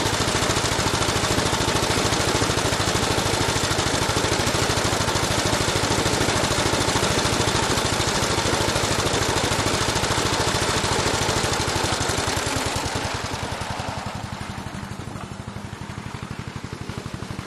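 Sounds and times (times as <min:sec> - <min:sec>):
Ransomes 24in petrol motor mower starting, running and passing: 0:00.0 - 0:17.4.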